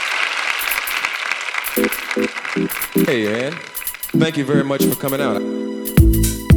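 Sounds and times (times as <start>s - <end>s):
audience applause: 0.0s - 4.2s
speech: 2.6s - 6.4s.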